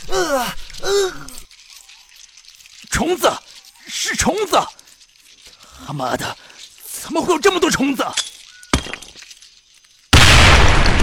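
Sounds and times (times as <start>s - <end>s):
speech: 3.1s - 3.5s, 4.2s - 4.8s, 5.9s - 6.4s, 7.0s - 8.2s
sharp crack: 10.1s - 11.0s
hand grenade exploding in a science-fiction drama: 10.2s - 11.0s.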